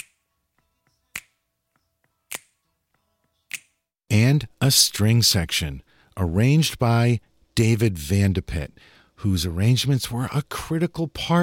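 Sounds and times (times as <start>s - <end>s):
finger snaps in a soul song: 0.0s - 0.2s, 1.1s - 1.4s, 2.3s - 2.6s, 3.5s - 3.8s
speech: 4.4s - 11.4s.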